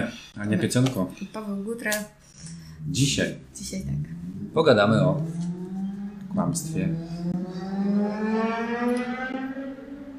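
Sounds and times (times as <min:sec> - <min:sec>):
speech: 0:00.0 - 0:05.5, 0:06.3 - 0:09.3
motorcycle passing by: 0:02.3 - 0:10.1.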